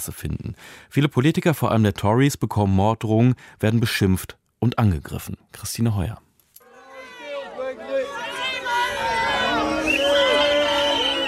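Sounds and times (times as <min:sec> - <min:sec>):
speech: 0:00.0 - 0:06.2
angry citizens shouting at politicians: 0:06.7 - 0:11.2.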